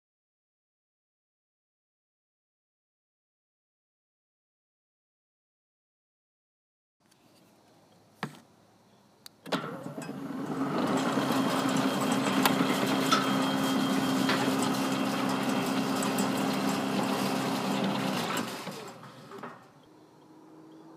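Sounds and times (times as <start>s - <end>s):
gate opening: 9.4s - 19.9s.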